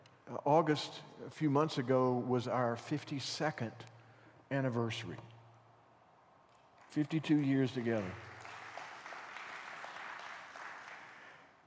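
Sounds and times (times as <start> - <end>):
speech: 0.3 - 3.9, 4.5 - 5.3, 6.9 - 8.3
audience applauding: 6.8 - 11.6.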